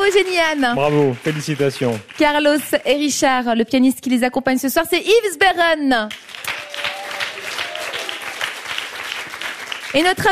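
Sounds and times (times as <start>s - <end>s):
audience clapping for singers and a pianist: 0.0s - 3.2s, 6.0s - 10.3s
speech: 0.1s - 6.3s, 10.0s - 10.3s.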